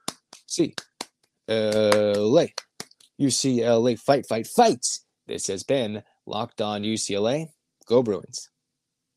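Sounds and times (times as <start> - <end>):
rhythmic eight-count clapping: 0.0 - 3.0
speech: 0.5 - 0.9, 1.5 - 2.6, 3.2 - 8.5.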